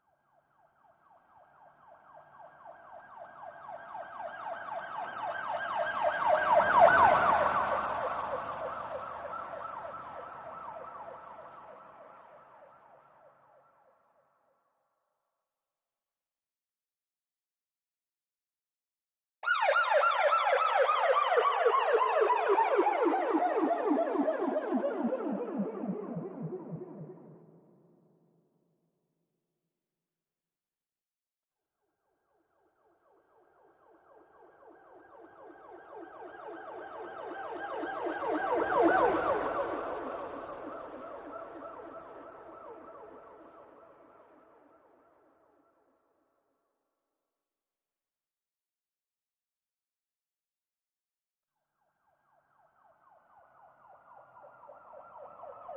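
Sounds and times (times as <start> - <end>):
police siren: 0.9 - 13.7, 19.4 - 27.6, 33.0 - 45.6, 52.0 - 55.7.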